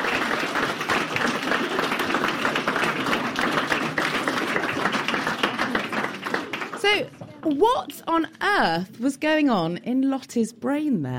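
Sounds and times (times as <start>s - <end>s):
audience applause: 0.0s - 7.6s
speech: 7.5s - 11.1s.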